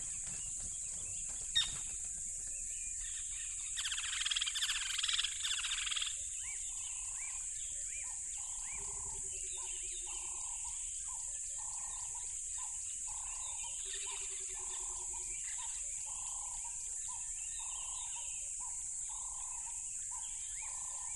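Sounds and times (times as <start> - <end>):
sharp rustle: 0.0 - 5.9
crickets chirping: 0.0 - 21.1.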